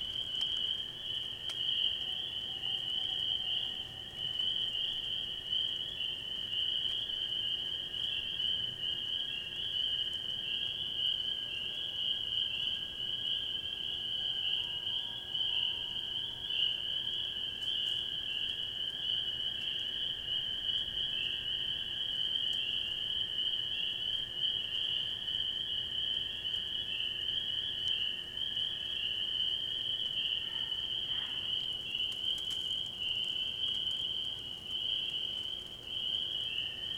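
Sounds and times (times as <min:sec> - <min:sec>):
night forest ambience in Wisconsin: 0:00.0 - 0:36.9.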